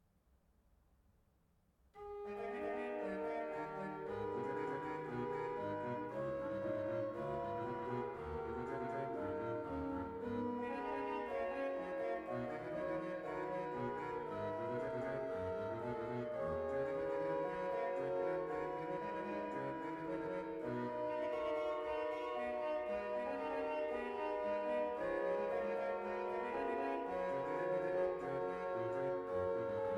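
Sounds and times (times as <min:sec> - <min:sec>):
organ piece: 0:02.0 - 0:29.9.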